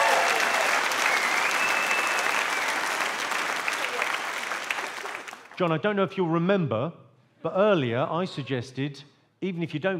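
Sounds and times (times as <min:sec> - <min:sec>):
round of applause: 0:00.0 - 0:05.6
speech: 0:05.6 - 0:09.9.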